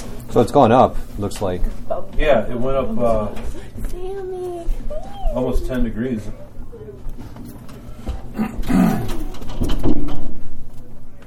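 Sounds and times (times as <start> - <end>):
faint noise: 0.0 - 11.2
speech: 0.4 - 4.3, 4.9 - 6.5, 8.4 - 8.9
pet bird cooing in low throaty bursts: 4.9 - 9.6.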